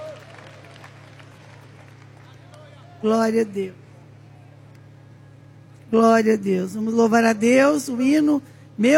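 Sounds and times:
congregation clapping hands in praise during a worship service: 0.0s - 3.0s
low constant hum: 0.0s - 8.9s
speech: 3.0s - 3.8s, 5.9s - 8.9s.

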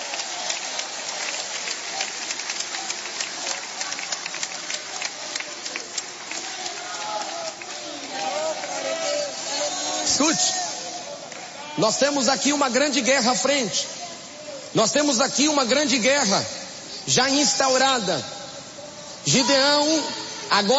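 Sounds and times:
audience clapping: 0.0s - 11.6s
speech: 11.8s - 14.0s, 14.8s - 18.4s, 19.2s - 20.7s.

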